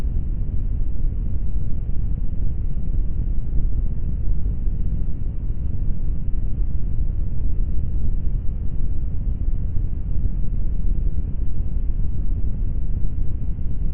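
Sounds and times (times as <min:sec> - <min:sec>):
low brown noise: 0:00.0 - 0:13.9.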